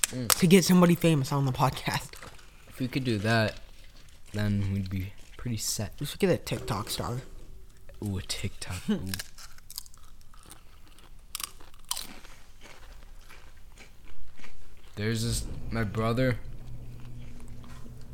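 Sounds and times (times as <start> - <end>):
speech: 0.1 - 2.2, 2.8 - 3.6, 4.3 - 7.3, 8.0 - 9.4, 15.0 - 16.5
garage door shutting: 6.2 - 8.0, 15.0 - 18.1.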